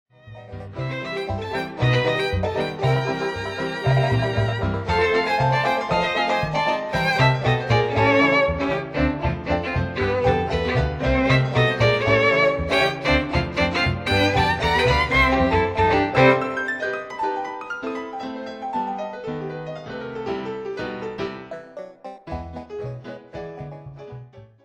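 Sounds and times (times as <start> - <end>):
violin: 0.2 - 18.4.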